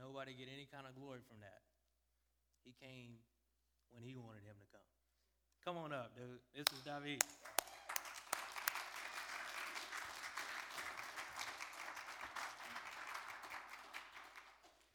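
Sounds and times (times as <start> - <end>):
speech: 0.2 - 1.8, 2.6 - 3.3, 3.9 - 5.0, 5.6 - 7.6
audience applause: 6.7 - 14.9.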